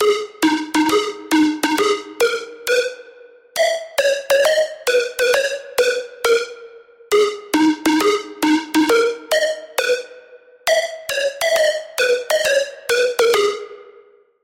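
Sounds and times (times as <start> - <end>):
Sylenth1 synth pluck: 0.0 - 14.0.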